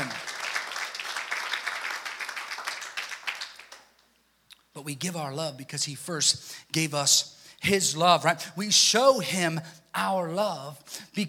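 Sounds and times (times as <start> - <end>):
audience applause: 0.0 - 3.9
speech: 4.8 - 11.2.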